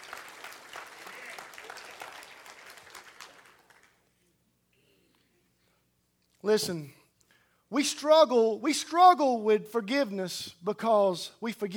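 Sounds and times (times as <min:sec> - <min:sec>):
audience applause: 0:00.0 - 0:04.0
speech: 0:06.4 - 0:07.0, 0:07.7 - 0:11.7.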